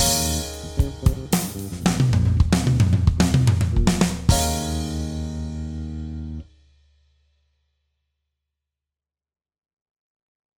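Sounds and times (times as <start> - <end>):
pop drum fills: 0.0 - 5.9.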